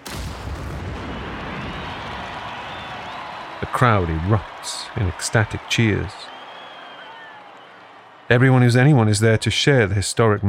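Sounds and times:
soldiers firing 21-gun artillery salute: 0.0s - 3.6s
speech: 3.7s - 6.4s, 8.3s - 10.4s.

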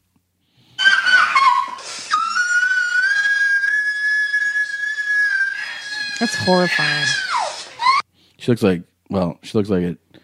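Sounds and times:
loud high-pitched squeal from played video: 0.8s - 8.0s
speech: 6.2s - 7.2s, 8.4s - 10.0s.

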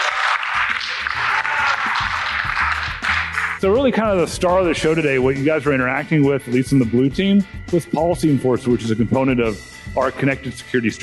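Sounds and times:
crowd voices shouting and whooping: 0.0s - 3.4s
crowd clapping: 0.0s - 3.8s
speech: 3.6s - 11.0s.

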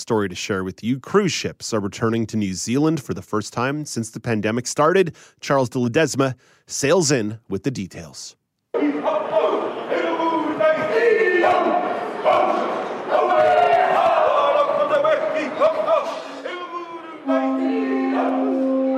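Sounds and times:
speech: 0.0s - 9.0s
crowd noise: 8.7s - 18.9s
Maori performers chanting at a welcoming ceremony in Auckland: 8.8s - 18.9s.

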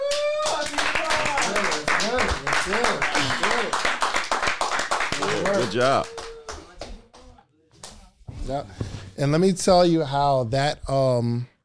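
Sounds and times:
excited audience voices whooping and cheering: 0.0s - 1.8s, 5.2s - 6.7s
audience clapping: 0.0s - 8.0s
speech: 5.5s - 6.2s, 8.5s - 11.5s.

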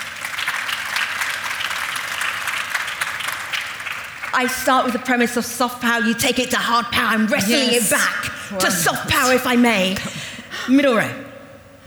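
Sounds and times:
audience applause: 0.0s - 4.4s
speech: 4.4s - 11.2s.

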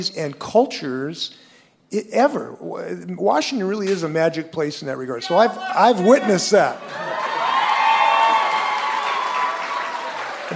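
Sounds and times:
speech: 0.0s - 7.1s
audience applause from a Seattle crowd: 6.0s - 10.5s.

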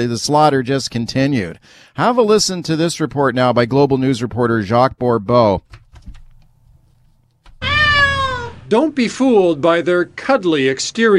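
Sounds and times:
speech: 0.0s - 5.8s, 8.7s - 11.1s
cat meowing: 7.6s - 8.7s.

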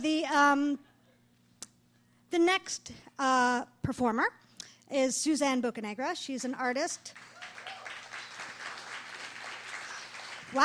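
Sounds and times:
speech: 0.0s - 0.9s, 2.3s - 7.3s
audience applause: 7.2s - 10.6s.

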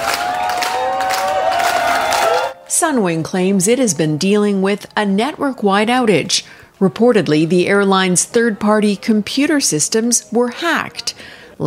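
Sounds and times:
angry stranded travelers clapping and chanting: 0.0s - 2.6s
speech: 2.8s - 11.6s.

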